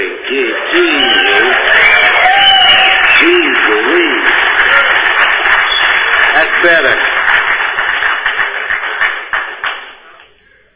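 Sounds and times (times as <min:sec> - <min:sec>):
audience whooping at a public meeting: 0:00.5 - 0:06.3
audience applause at a public meeting: 0:00.6 - 0:10.3.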